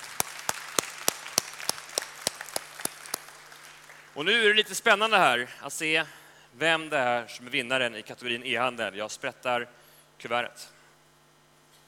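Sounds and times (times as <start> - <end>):
audience applause: 0.0 - 4.1
speech: 4.2 - 10.8.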